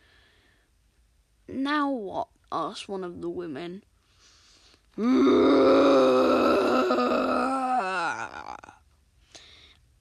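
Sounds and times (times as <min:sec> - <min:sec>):
speech: 0:01.6 - 0:03.9, 0:05.0 - 0:07.2
terrifying inhuman roar echoing in cavern: 0:05.0 - 0:08.6.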